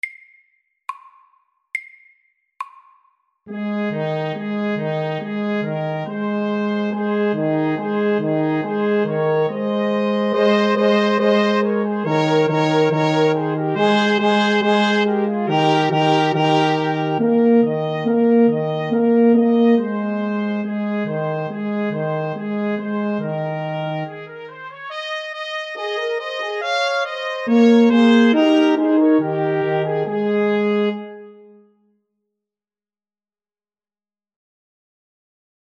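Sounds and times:
fanfare: 3.5s - 31.6s.

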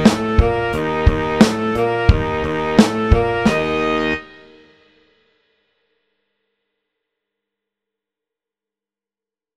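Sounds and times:
funk music: 0.0s - 4.9s.

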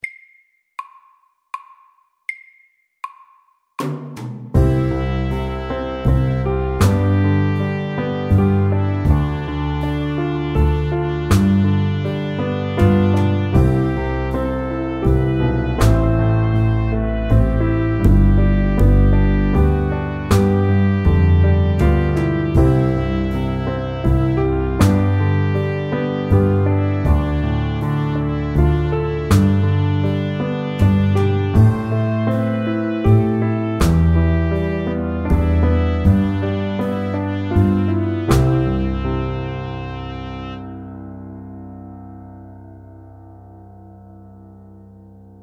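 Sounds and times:
soft rock music: 4.6s - 39.9s.

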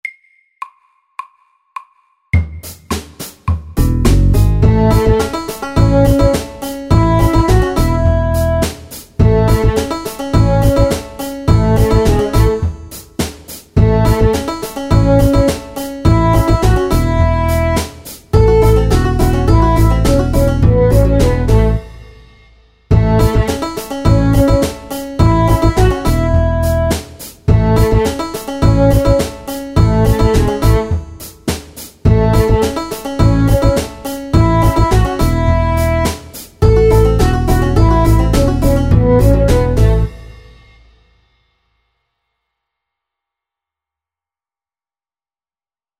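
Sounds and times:
bluegrass music: 3.8s - 13.0s, 13.8s - 21.9s, 22.9s - 31.3s, 32.1s - 40.2s.

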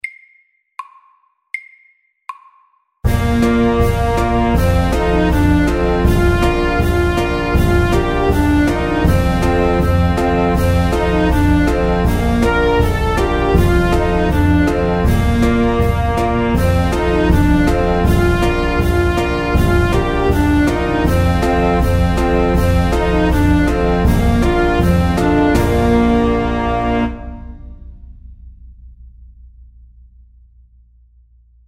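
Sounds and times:
slow cancan music: 3.1s - 28.0s.

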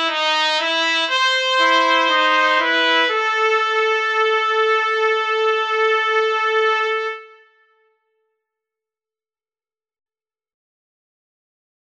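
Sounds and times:
duet in B minor: 0.0s - 7.4s.

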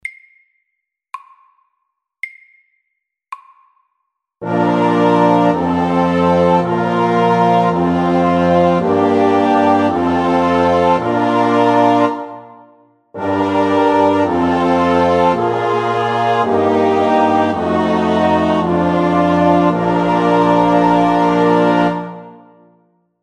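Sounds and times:
chromatic chorale: 4.4s - 22.7s.

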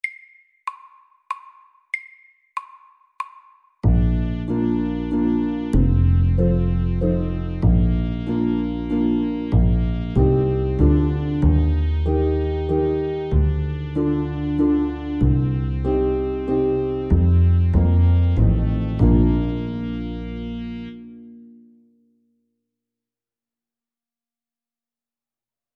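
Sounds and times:
summer waltz music: 3.8s - 21.4s.

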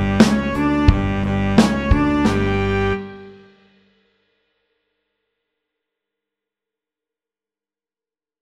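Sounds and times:
funk music: 0.0s - 3.6s.

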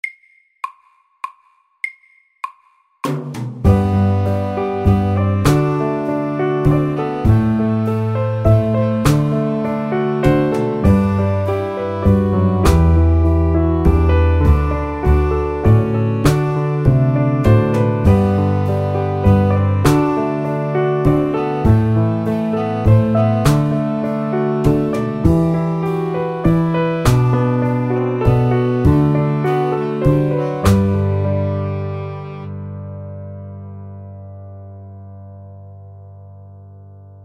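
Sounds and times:
soft rock music: 3.7s - 32.1s.

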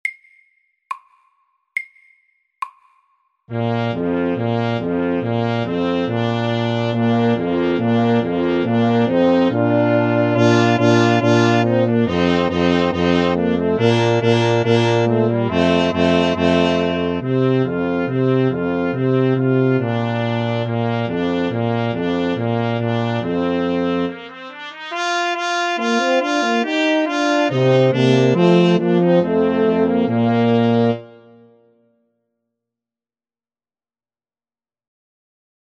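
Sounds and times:
fanfare: 3.5s - 31.5s.

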